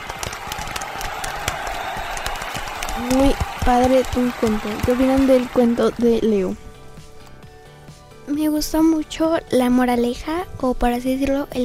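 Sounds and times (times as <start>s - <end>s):
applause: 0.0s - 6.2s
speech: 3.0s - 6.6s, 8.4s - 11.6s.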